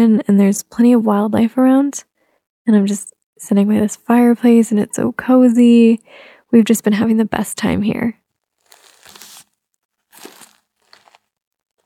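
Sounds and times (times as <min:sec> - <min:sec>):
speech: 0:00.0 - 0:08.2
crinkling approaching down a hallway: 0:08.3 - 0:11.8.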